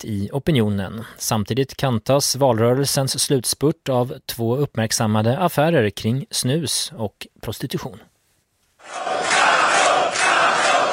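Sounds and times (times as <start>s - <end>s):
speech: 0.0s - 8.1s
supporters cheering: 8.8s - 10.9s.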